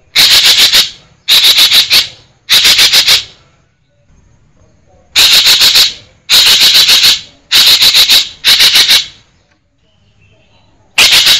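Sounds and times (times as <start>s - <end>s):
Green magpie harsh rattling bursts: 0.0s - 3.4s, 5.2s - 9.2s, 11.0s - 11.3s.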